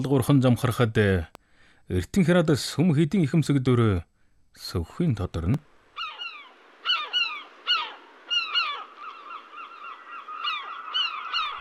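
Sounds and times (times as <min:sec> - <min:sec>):
speech: 0:00.0 - 0:05.7
ruddy shelducks honking as they fly off: 0:06.0 - 0:11.5.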